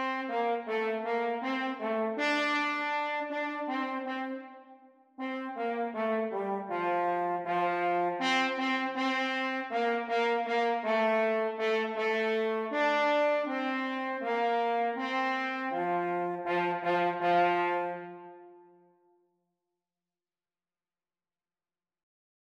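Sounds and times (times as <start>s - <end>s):
French horn duet playalong for practice: 0.0s - 18.8s.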